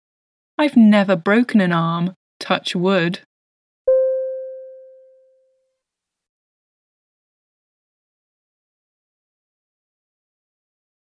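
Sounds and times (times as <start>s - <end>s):
speech: 0.6s - 3.3s
prompt beep: 3.9s - 5.2s.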